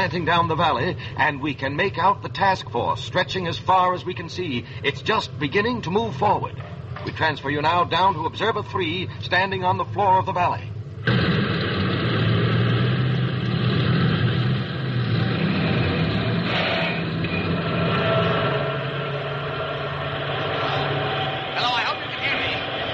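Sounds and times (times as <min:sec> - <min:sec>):
speech: 0:00.0 - 0:11.4
roar of army vehicle motors: 0:11.0 - 0:22.9.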